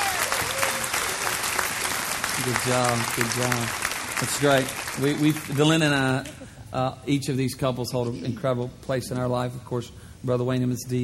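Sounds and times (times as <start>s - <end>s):
audience applause: 0.0s - 6.2s
speech: 2.4s - 11.0s.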